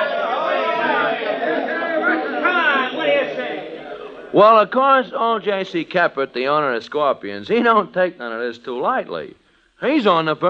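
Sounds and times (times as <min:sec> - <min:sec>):
fighting-mad baseball crowd howling: 0:00.0 - 0:05.2
speech: 0:04.3 - 0:10.4.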